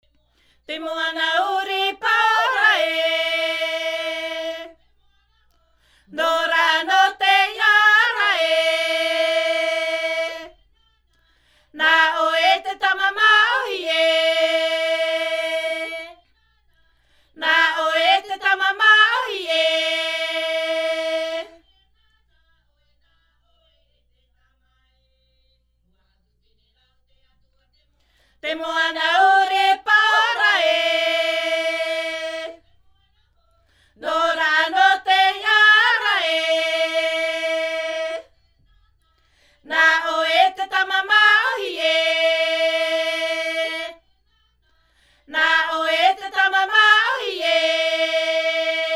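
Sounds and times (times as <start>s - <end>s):
choir singing a himene tarava: 0.6s - 5.0s, 6.1s - 10.8s, 11.7s - 16.4s, 17.3s - 21.7s, 28.4s - 32.8s, 33.9s - 38.6s, 39.6s - 44.3s, 45.2s - 48.9s.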